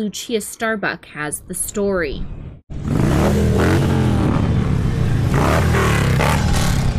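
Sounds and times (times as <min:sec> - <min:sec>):
speech: 0:00.0 - 0:03.8
motorcycle engines of bikers riding through Reno and Virginia City: 0:02.7 - 0:06.9.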